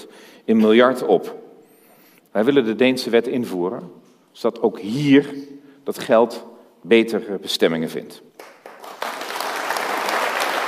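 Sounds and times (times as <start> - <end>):
speech: 0.5 - 1.4, 2.3 - 8.5
crowd applause: 8.4 - 10.6.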